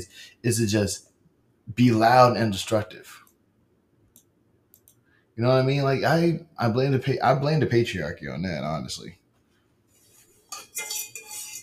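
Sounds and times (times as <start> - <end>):
speech: 0.0 - 1.1, 1.7 - 3.2, 5.4 - 9.2
utensil scraping a pot while eating noodles: 10.0 - 11.6.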